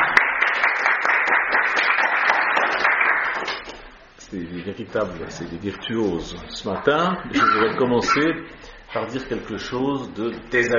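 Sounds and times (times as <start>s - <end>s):
audience applause: 0.0s - 3.8s
speech: 4.3s - 10.7s.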